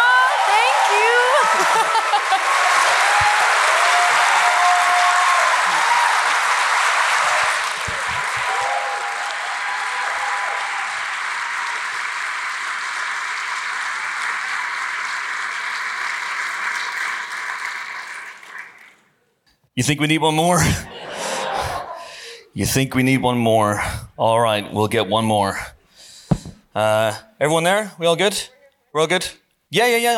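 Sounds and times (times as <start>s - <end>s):
audience applauding a guest: 0.0s - 19.1s
laughter: 1.2s - 3.0s, 20.6s - 22.2s
speech: 19.8s - 21.2s, 22.6s - 25.7s, 26.8s - 30.1s.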